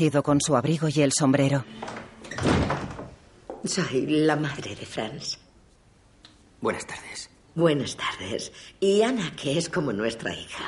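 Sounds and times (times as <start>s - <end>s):
speech: 0.0s - 2.7s, 3.6s - 5.4s, 6.6s - 10.6s
door being opened: 1.7s - 3.2s.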